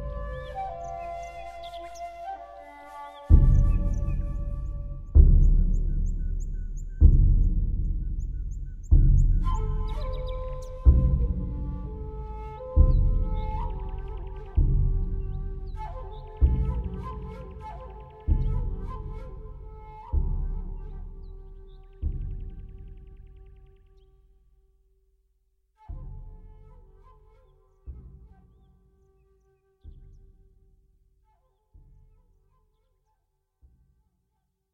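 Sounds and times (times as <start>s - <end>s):
shakuhachi flute: 0.0s - 24.0s, 25.8s - 30.7s
taiko drum: 3.3s - 21.3s, 22.0s - 23.2s.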